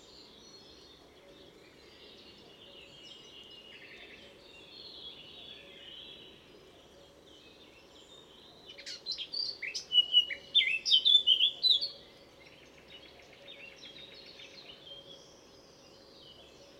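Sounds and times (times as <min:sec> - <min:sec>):
Eurasian blackcap song: 0:00.0 - 0:16.7.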